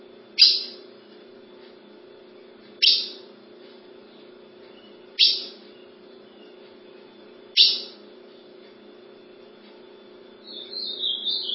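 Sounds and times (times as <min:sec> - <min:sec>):
ultramarine grosbeak calling: 0:00.4 - 0:01.1, 0:02.8 - 0:03.3, 0:04.1 - 0:08.0, 0:10.4 - 0:11.5.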